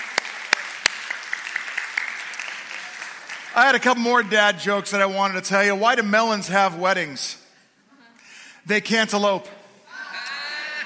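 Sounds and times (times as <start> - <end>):
audience applause: 0.0 - 3.9
speech: 3.6 - 7.4, 8.7 - 9.6.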